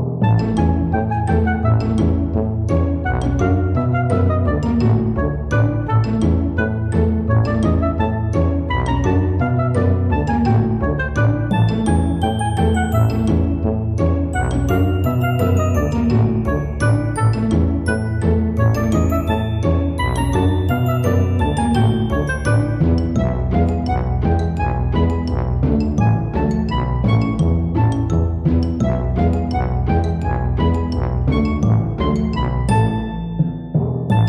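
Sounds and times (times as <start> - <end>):
circus music: 0.2 - 34.2.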